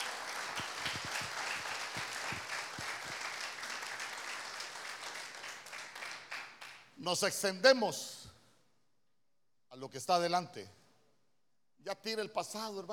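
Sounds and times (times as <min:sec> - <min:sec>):
audience applause: 0:00.0 - 0:06.8
speech: 0:07.0 - 0:08.2, 0:09.8 - 0:10.8, 0:11.8 - 0:12.9.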